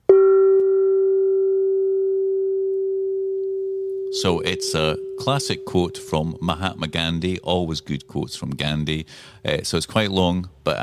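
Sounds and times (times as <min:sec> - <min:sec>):
gong being struck: 0:00.1 - 0:07.2
speech: 0:04.2 - 0:10.8.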